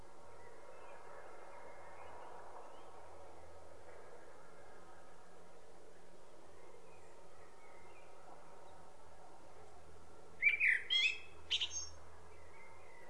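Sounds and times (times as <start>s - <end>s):
common blackbird singing: 10.4s - 13.0s.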